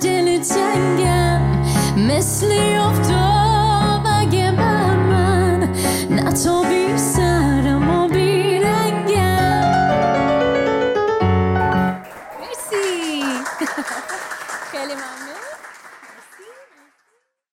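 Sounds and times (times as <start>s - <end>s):
live piano: 0.0s - 12.6s
laughter: 12.4s - 16.7s.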